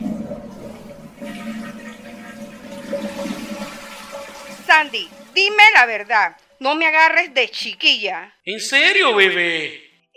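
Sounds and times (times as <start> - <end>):
toilet flushing: 0.0 - 6.7
speech: 4.8 - 10.1.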